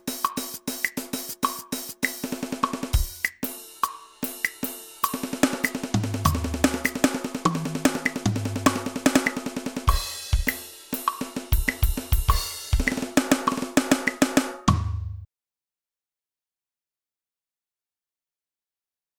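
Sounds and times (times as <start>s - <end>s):
drum solo: 0.0s - 15.3s.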